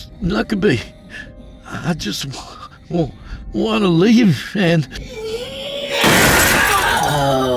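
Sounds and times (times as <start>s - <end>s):
speech: 0.2s - 5.2s
first-floor glass windows bursting outwards and shattering: 6.0s - 7.4s.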